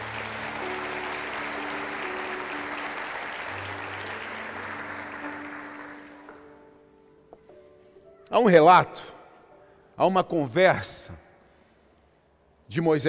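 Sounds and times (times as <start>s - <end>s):
audience applause: 0.0s - 6.8s
speech: 8.3s - 9.2s, 10.0s - 11.2s, 12.7s - 13.0s.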